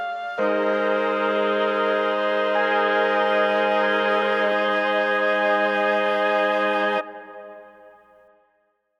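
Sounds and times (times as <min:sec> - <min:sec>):
chamber wind ensemble: 0:00.0 - 0:08.2.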